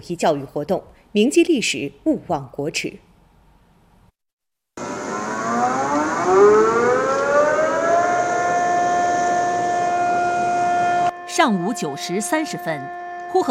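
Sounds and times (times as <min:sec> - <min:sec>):
speech: 0:00.0 - 0:03.1, 0:11.4 - 0:13.4
air raid siren in Inner Mongolia: 0:04.8 - 0:13.4.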